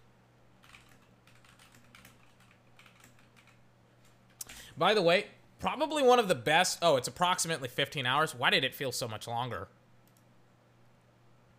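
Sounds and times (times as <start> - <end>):
typing on a computer keyboard entering an online search: 0.6 - 4.2
speech: 4.8 - 9.8.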